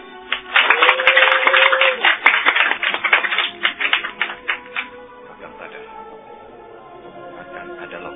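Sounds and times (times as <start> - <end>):
prolonged applause: 0.3 - 5.0.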